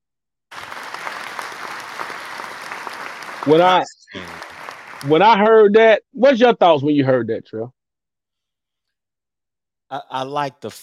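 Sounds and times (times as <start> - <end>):
hand clapping applause: 0.5 - 5.6
speech: 3.4 - 4.2, 5.0 - 7.8, 9.9 - 10.8.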